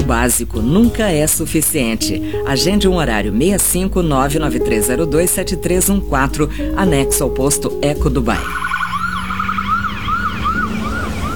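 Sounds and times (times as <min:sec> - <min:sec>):
low engine rumble: 0:00.0 - 0:11.3
speech: 0:00.1 - 0:08.7
ambulance siren wailing: 0:06.4 - 0:11.3.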